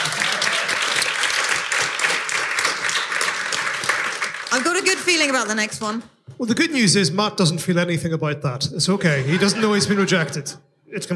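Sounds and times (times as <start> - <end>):
live audience applause: 0.0 - 5.6
speech: 4.6 - 11.1
laughter: 8.9 - 10.6.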